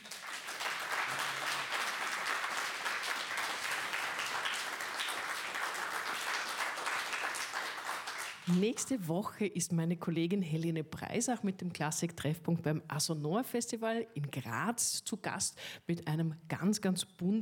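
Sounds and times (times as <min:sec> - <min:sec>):
audience applause: 0:00.0 - 0:08.6
speech: 0:08.5 - 0:17.4.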